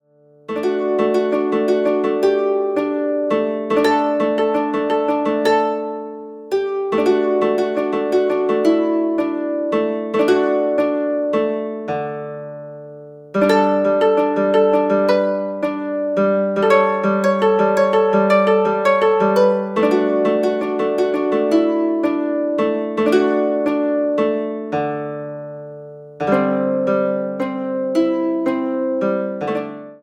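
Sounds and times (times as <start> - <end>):
lute song: 0.5 - 30.0.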